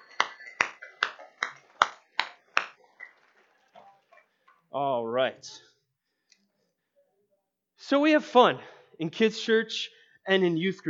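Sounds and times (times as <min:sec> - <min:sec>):
audience applause: 0:00.0 - 0:04.3
speech: 0:04.7 - 0:05.7, 0:07.9 - 0:10.8.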